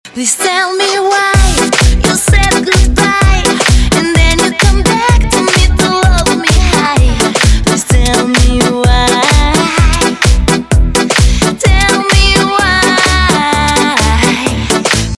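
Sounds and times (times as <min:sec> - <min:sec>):
club music: 0:00.1 - 0:15.1.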